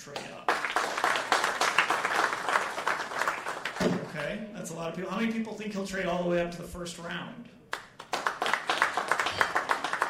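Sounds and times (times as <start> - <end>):
audience round of applause: 0.0 - 4.2, 7.7 - 10.0
speech: 3.8 - 7.6.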